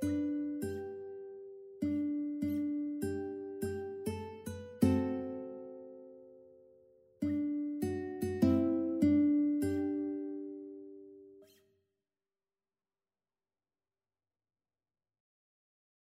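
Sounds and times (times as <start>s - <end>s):
ukulele strumming: 0.0s - 1.2s, 1.8s - 6.2s, 7.2s - 11.2s.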